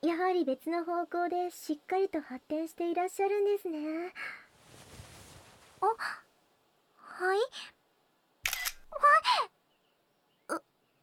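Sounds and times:
speech: 0.0s - 4.4s, 5.8s - 6.2s, 7.2s - 7.8s, 8.9s - 9.5s, 10.5s - 10.7s
smartphone camera shutter taking a photo: 8.4s - 8.9s.

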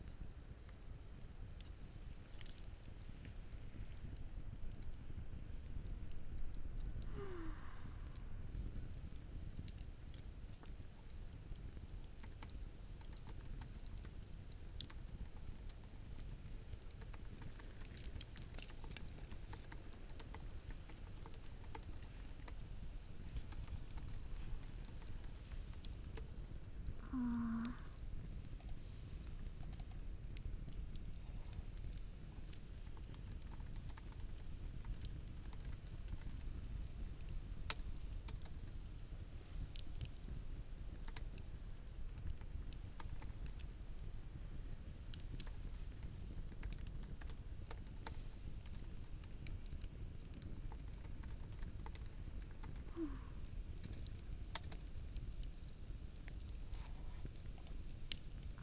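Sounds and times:
campfire crackling: 0.0s - 58.6s
working on a PC: 12.2s - 12.4s, 17.0s - 22.6s, 32.9s - 36.4s, 46.6s - 48.8s, 50.7s - 53.1s, 54.5s - 54.8s.

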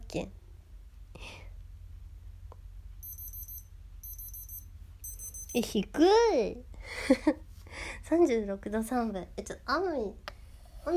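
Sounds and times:
low steady hum: 0.0s - 10.9s
speech: 0.1s - 0.4s, 5.5s - 10.9s
digital thermometer beeping after measurement: 3.0s - 5.6s.

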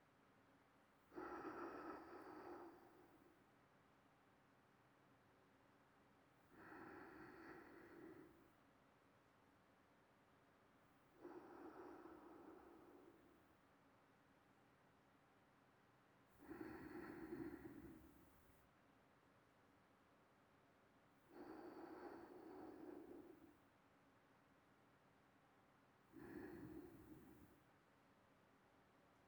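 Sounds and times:
sleeping breathing: 1.1s - 3.4s, 6.5s - 8.5s, 11.2s - 13.5s, 16.4s - 18.4s, 21.3s - 23.6s, 26.1s - 27.6s.

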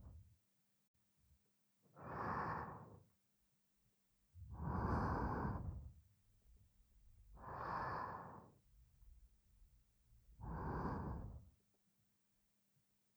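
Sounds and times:
person breathing in sleep: 2.0s - 3.1s, 4.5s - 6.0s, 7.4s - 8.6s, 10.3s - 11.5s.

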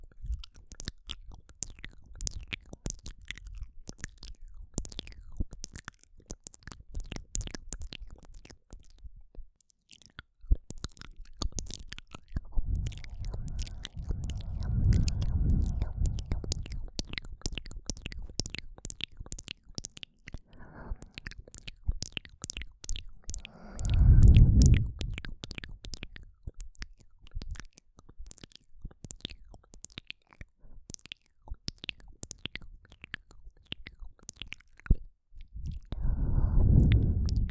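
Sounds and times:
moist mouth sounds: 10.8s - 25.6s, 31.0s - 37.5s.

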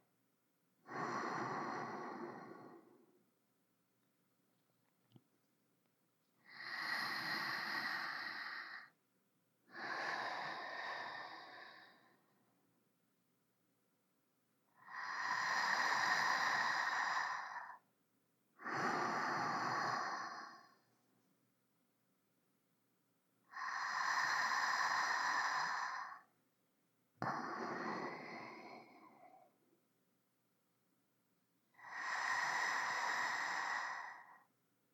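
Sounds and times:
sleeping breath: 0.9s - 3.2s, 6.4s - 9.0s, 9.7s - 12.4s, 14.8s - 17.8s, 18.6s - 20.9s, 23.5s - 26.3s, 27.2s - 29.6s, 31.8s - 34.5s.

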